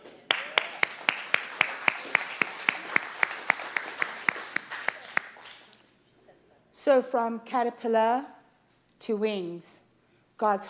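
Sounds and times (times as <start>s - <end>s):
audience clapping in a steady fast rhythm: 0.0s - 5.8s
speech: 6.8s - 8.4s, 9.1s - 9.8s, 10.4s - 10.6s.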